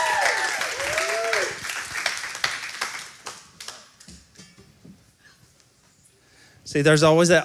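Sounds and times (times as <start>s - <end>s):
whoops and cheers: 0.0s - 1.8s
crowd applause: 0.0s - 3.8s
speech: 6.7s - 7.4s.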